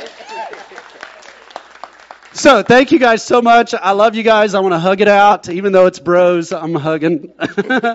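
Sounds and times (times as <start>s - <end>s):
audience applause: 0.0s - 3.0s
speech: 2.3s - 7.9s.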